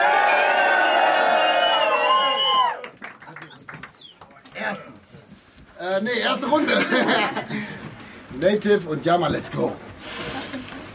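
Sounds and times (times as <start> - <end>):
crowd cheering and whooping: 0.0 - 3.0
speech: 6.0 - 7.8, 8.4 - 9.9
laughter: 6.4 - 7.9.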